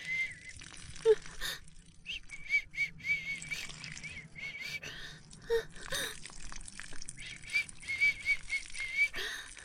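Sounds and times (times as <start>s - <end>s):
soft thin high-pitched whistling: 0.0s - 0.6s, 2.0s - 5.0s, 7.0s - 9.2s.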